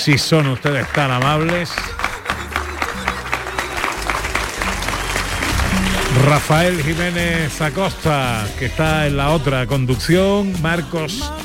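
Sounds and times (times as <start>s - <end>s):
speech: 0.0s - 2.0s, 6.1s - 11.4s
audience applause: 0.0s - 8.8s.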